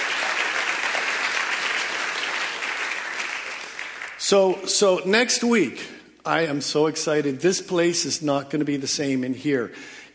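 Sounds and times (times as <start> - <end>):
sustained applause from a large group: 0.0 - 4.2
speech: 4.3 - 10.1.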